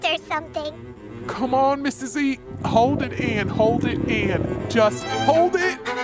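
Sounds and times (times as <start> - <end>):
speech: 0.2 - 5.8
fart sound effect: 2.5 - 5.2.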